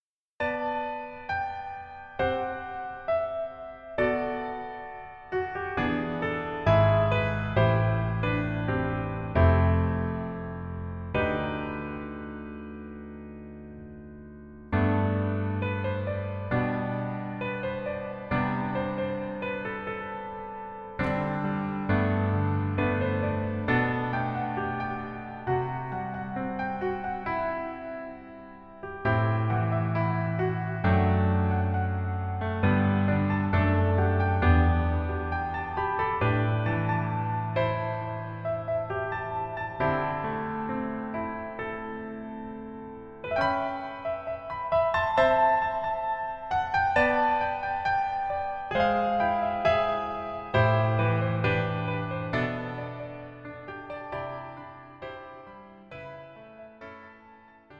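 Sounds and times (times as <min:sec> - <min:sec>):
piano melody backing track: 0:00.4 - 0:57.7.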